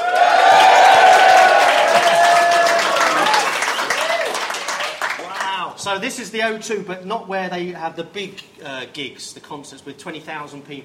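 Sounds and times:
live audience at the O2 cheering with whoops and shouts: 0:00.0 - 0:05.7
speech: 0:05.8 - 0:10.8.

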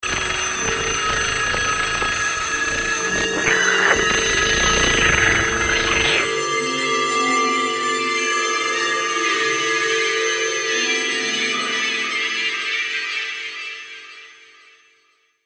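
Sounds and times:
phone ringtone: 0:00.1 - 0:12.5.

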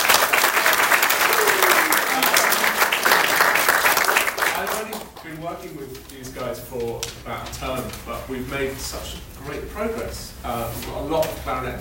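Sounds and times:
audience applause for year three clarinet players at a woodwind concert: 0:00.0 - 0:05.4
speech: 0:06.6 - 0:11.7.

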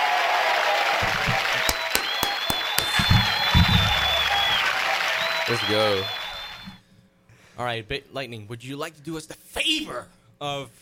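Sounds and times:
scattered cheers and voices: 0:00.0 - 0:06.6
crowd applauding: 0:00.0 - 0:06.8
high whistle: 0:01.0 - 0:06.8
speech: 0:05.5 - 0:06.2, 0:07.6 - 0:10.8.

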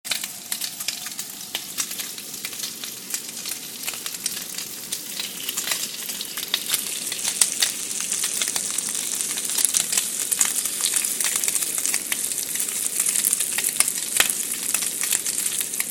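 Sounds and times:
bacon sizzling: 0:00.1 - 0:15.8.

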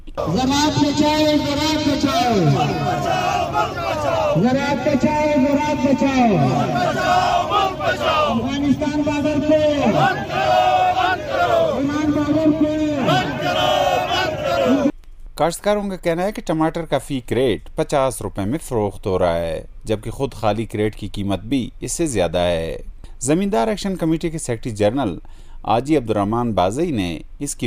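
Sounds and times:
noise: 0:00.0 - 0:27.6
speech: 0:00.2 - 0:13.8, 0:15.4 - 0:27.6
protesting farmers chanting slogans: 0:00.2 - 0:14.9.

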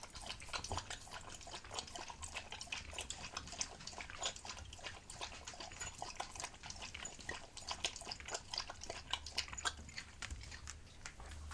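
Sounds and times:
dog lapping up water: 0:00.0 - 0:11.4.

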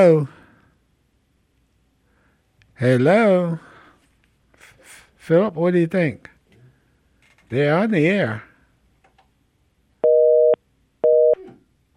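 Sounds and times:
speech: 0:00.0 - 0:00.4, 0:02.8 - 0:03.7, 0:05.3 - 0:06.3, 0:07.5 - 0:08.5
busy signal after a phone-in caller's dropped line: 0:10.0 - 0:11.4.

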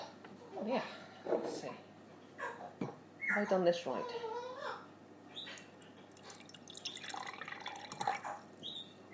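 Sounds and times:
speech: 0:00.7 - 0:01.9, 0:03.4 - 0:04.3
water fizzing and crackling while being carbonated: 0:05.5 - 0:08.6.

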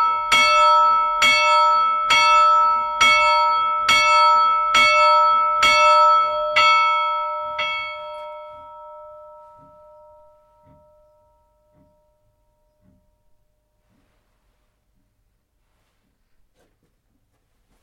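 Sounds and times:
church bells ringing heard from inside: 0:00.0 - 0:13.8.

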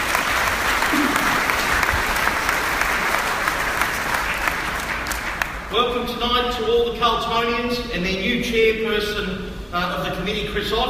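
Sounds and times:
audience applause for players and coaches: 0:00.0 - 0:05.7
speech: 0:05.9 - 0:10.8.

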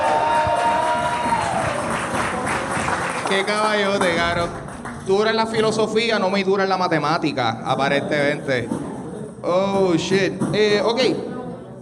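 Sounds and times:
crowd applauding and cheering: 0:00.0 - 0:05.6
speech: 0:03.3 - 0:08.8, 0:09.4 - 0:11.3.

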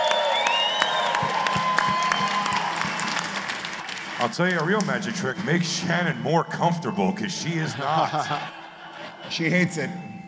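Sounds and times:
audience clapping and cheering: 0:00.0 - 0:06.2
speech: 0:04.2 - 0:08.6, 0:09.3 - 0:10.1
laughter: 0:04.2 - 0:10.2.

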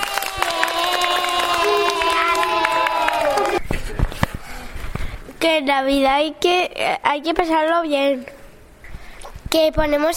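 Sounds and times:
class of young children cheering and shouting: 0:00.0 - 0:03.6
scattered clapping: 0:00.0 - 0:03.6
speech: 0:05.4 - 0:08.4, 0:09.5 - 0:10.1.

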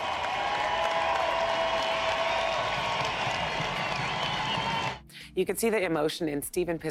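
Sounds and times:
large baseball stadium crowd applauding: 0:00.0 - 0:05.0
speech: 0:05.4 - 0:06.8.

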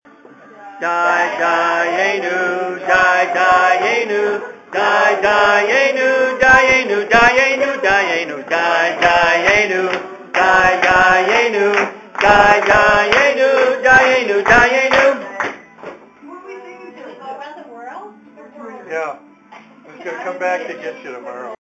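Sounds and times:
Passover singing: 0:00.6 - 0:15.6.

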